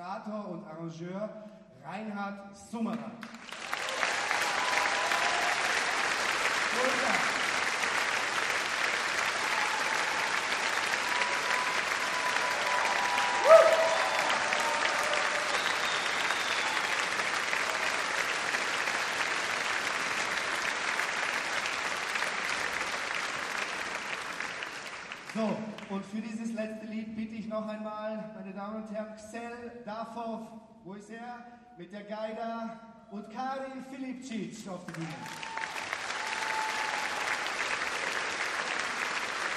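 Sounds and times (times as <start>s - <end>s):
speech: 0.2s - 3.7s, 26.1s - 35.6s
audience applause: 3.2s - 26.0s, 34.9s - 39.5s.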